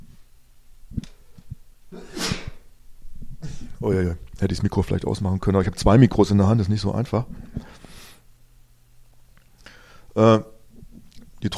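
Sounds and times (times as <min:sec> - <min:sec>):
person sneezing: 0:01.9 - 0:02.7
speech: 0:03.8 - 0:07.6, 0:10.2 - 0:10.5.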